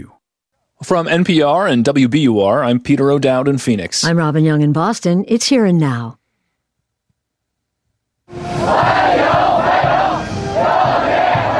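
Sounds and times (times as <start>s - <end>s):
speech: 0.0s - 0.2s, 0.8s - 6.2s
dense crowd roar: 8.3s - 11.5s
Chinese teenagers chanting welcome in unison: 8.6s - 11.5s.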